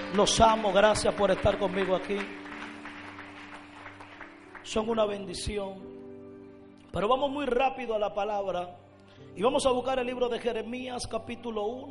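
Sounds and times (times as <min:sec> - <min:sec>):
audience applause: 0:00.0 - 0:04.9
speech: 0:00.1 - 0:02.4, 0:04.7 - 0:06.0, 0:06.9 - 0:11.9.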